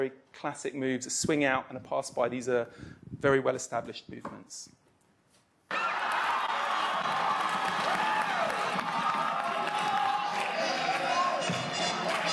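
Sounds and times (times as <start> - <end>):
speech: 0.0 - 4.8
audience applauding: 5.7 - 12.3
rhythmic choral clapping: 6.9 - 12.3.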